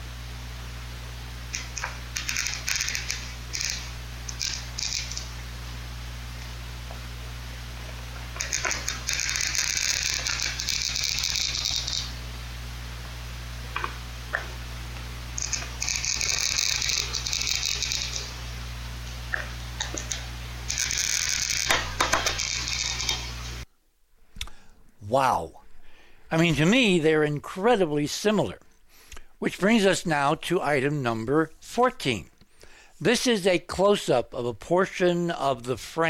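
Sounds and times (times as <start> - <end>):
steady low hum: 0.0 - 23.8
glass cutter shredding a chunk of glass: 1.6 - 5.4, 8.2 - 12.2, 15.4 - 18.5, 19.4 - 23.6
speech: 25.2 - 25.6, 26.3 - 28.6, 29.4 - 32.3, 33.0 - 36.0.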